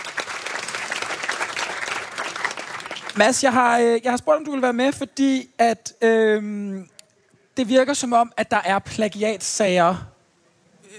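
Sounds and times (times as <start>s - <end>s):
audience applauding a guest on stage: 0.0s - 3.2s
speech: 3.2s - 6.9s, 7.6s - 10.1s.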